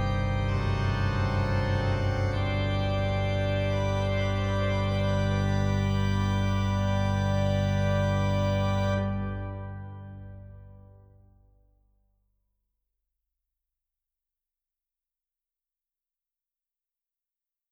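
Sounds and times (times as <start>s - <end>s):
organ plenum: 0.0s - 11.3s.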